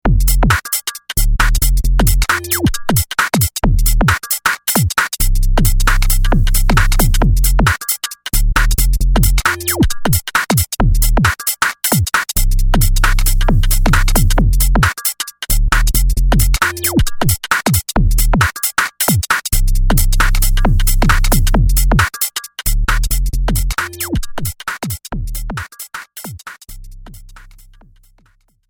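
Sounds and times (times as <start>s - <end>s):
two-step beat: 0.0s - 28.5s.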